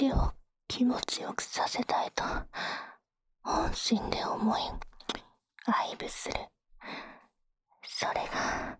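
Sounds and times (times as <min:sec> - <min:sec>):
adult woman's teasing voice: 0:00.0 - 0:02.4, 0:03.5 - 0:04.9, 0:05.6 - 0:06.5, 0:07.9 - 0:08.5.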